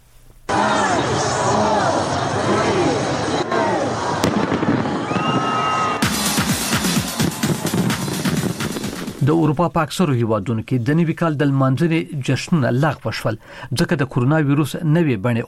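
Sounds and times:
crowd voices: 0.5 - 9.0
New Year 2020 fireworks in Sydney, Australia: 4.2 - 9.3
speech: 9.3 - 15.4.

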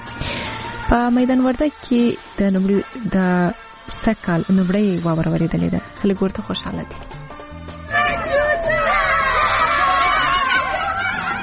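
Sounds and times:
speech: 0.9 - 7.2
children shouting and laughing while playing in snow in Maidan Wardak province: 7.8 - 11.4.

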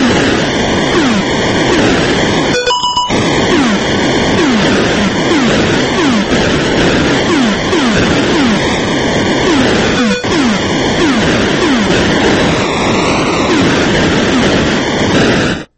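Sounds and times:
Atari River Raid video game plane exploding: 0.0 - 15.7.

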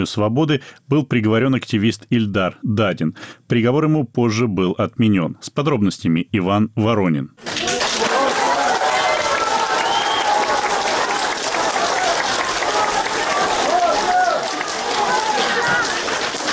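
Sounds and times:
speech: 0.0 - 7.7
stormy applause in a courtroom: 7.4 - 16.5.

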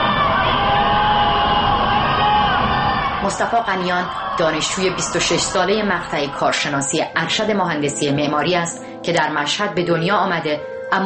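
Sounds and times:
protesters shouting slogans at night: 0.0 - 6.6
speech: 3.3 - 11.0.

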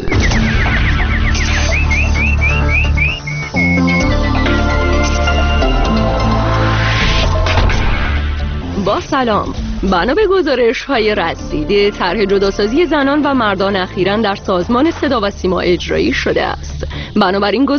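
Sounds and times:
nightingale-like warbling: 0.0 - 4.8
loud continuous music bed: 1.6 - 16.6
speech: 9.1 - 17.7.

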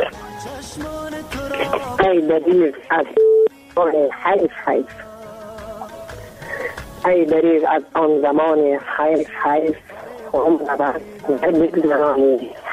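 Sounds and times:
speech: 0.5 - 5.1, 7.0 - 12.6
electronic tone of a telephone call being connected: 3.0 - 3.5.

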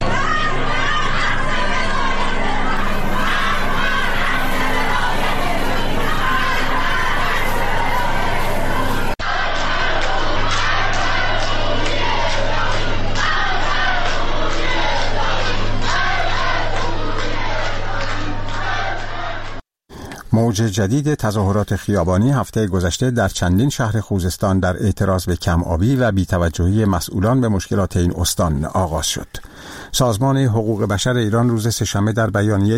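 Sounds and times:
protest crowd chanting slogans: 0.0 - 19.6
speech: 20.6 - 32.7.

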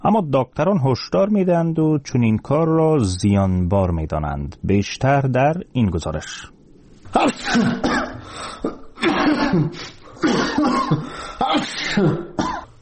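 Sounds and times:
speech: 0.0 - 12.6
sick person sneezing and spluttering: 7.1 - 12.7
sick person gasping: 8.1 - 8.8, 11.0 - 11.5.

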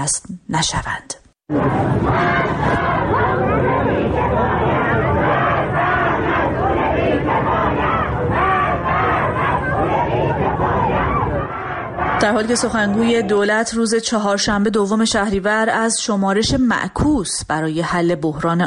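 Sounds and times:
speech: 0.0 - 2.8, 12.2 - 18.6
protest crowd chanting slogans in the street in Hamedan: 1.5 - 13.9.

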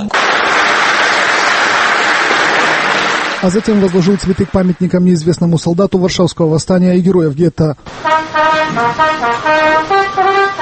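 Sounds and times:
Warsaw University students applauding a US presidential candidate: 0.0 - 5.2, 7.9 - 10.6
speech: 3.4 - 10.0.

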